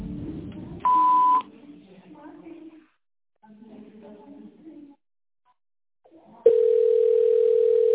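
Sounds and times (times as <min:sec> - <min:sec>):
telephone system beep tone: 0:00.9 - 0:01.4, 0:06.5 - 0:07.9.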